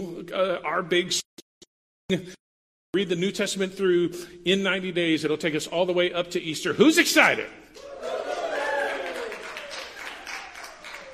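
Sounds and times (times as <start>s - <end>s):
speech: 0.3s - 1.3s, 2.1s - 8.4s
audience clapping: 7.8s - 11.1s.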